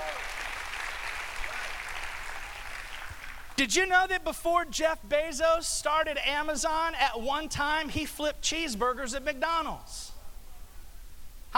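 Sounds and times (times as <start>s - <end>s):
church congregation clapping: 0.0s - 3.6s
speech: 3.6s - 10.1s.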